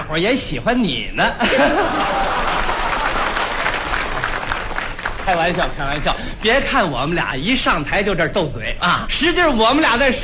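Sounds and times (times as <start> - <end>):
speech: 0.1 - 2.4, 5.3 - 10.2
laughter: 1.2 - 4.5
audience applause: 1.9 - 5.9.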